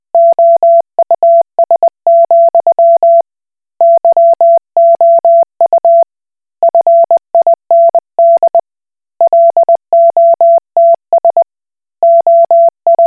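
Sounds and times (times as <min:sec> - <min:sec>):
Koch Morse code beeps: 0:00.2 - 0:03.2, 0:03.8 - 0:06.0, 0:06.7 - 0:08.6, 0:09.2 - 0:11.4, 0:12.0 - 0:13.0.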